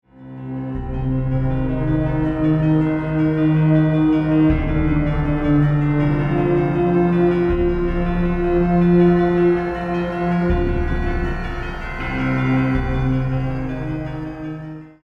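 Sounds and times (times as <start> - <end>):
scary sound: 0.6 - 14.8.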